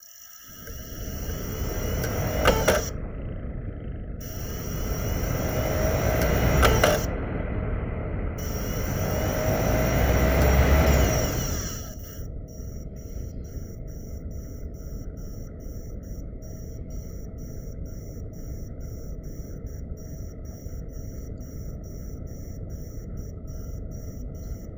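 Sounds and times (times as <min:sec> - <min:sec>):
internal DVD drive spinning up: 0:00.0 - 0:07.5, 0:08.2 - 0:24.7.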